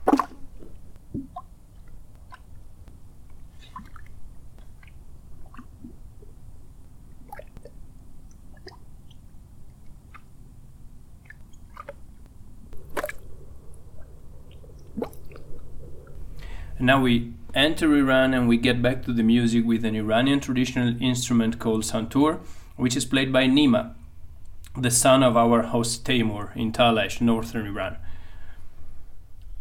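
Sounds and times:
small mud volcano bubbling near Gobustan: 0.0s - 22.1s
speech: 16.8s - 24.0s, 24.8s - 28.0s.

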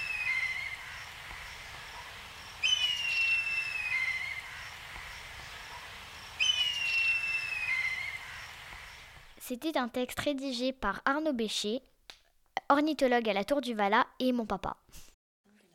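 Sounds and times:
black kite giving shrill quavering whistled calls: 0.0s - 4.8s, 5.7s - 9.1s
steady hiss of noise: 0.0s - 9.7s
speech: 9.5s - 11.9s, 12.7s - 15.1s.

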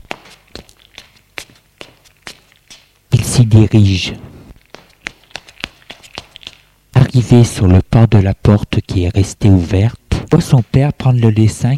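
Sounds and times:
footsteps in the living room: 0.0s - 3.1s, 4.5s - 6.8s
speech: 3.4s - 4.3s, 7.2s - 11.7s.

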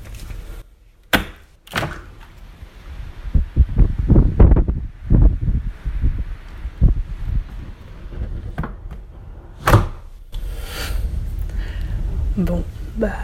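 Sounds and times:
thunderstorm wind: 0.0s - 13.2s
thunderstorm rain: 2.3s - 8.1s, 10.4s - 13.2s.

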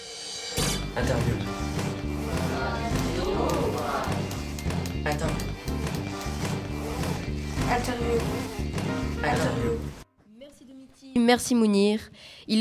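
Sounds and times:
radio jingle music: 0.6s - 10.0s
speech: 1.0s - 1.8s, 5.0s - 6.0s, 7.7s - 9.9s, 11.1s - 12.5s.

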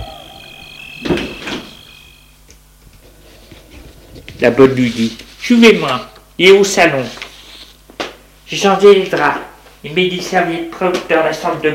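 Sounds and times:
door being closed: 0.0s - 2.2s
speech: 4.4s - 7.2s, 8.5s - 11.7s.

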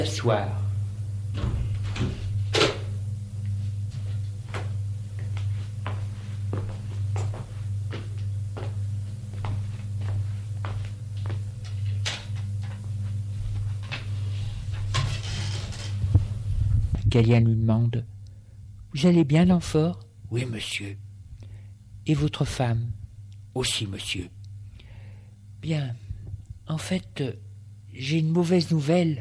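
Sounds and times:
speech: 0.0s - 0.6s, 17.2s - 18.2s, 18.9s - 21.1s, 22.1s - 23.0s, 23.6s - 24.4s, 25.6s - 26.0s, 26.7s - 29.1s
low electrical hum: 0.0s - 29.1s
footsteps of someone walking in: 3.4s - 12.0s
door released and opened: 14.8s - 16.0s.

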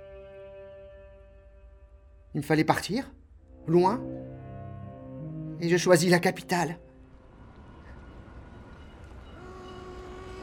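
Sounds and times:
speech: 2.3s - 4.2s, 5.6s - 6.8s
train arriving at a station: 6.1s - 10.4s.

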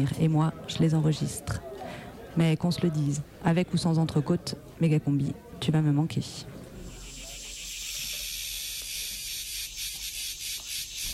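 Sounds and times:
speech: 0.0s - 6.6s
cicadas singing: 6.8s - 11.1s.

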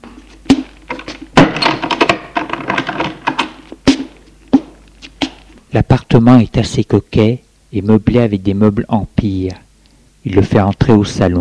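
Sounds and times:
door closing: 0.9s - 4.0s
speech: 5.7s - 9.6s, 10.2s - 11.3s.

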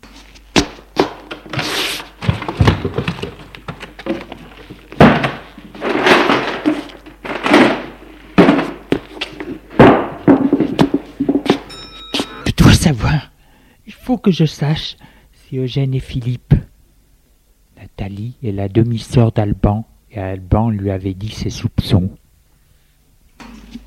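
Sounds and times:
rustling handling noises: 0.0s - 12.4s
cupboard and wardrobe doors opened and shut: 1.0s - 11.6s
speech: 2.8s - 3.2s, 14.1s - 16.6s, 18.1s - 22.2s.

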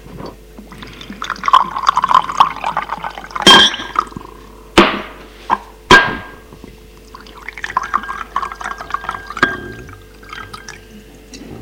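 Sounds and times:
wine poured into two glasses: 0.7s - 4.5s, 7.0s - 11.0s.

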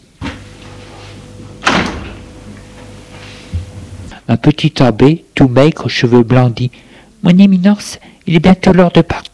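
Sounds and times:
faint steady hum: 0.0s - 9.3s
door shutting: 0.2s - 3.9s
speech: 4.3s - 9.3s.

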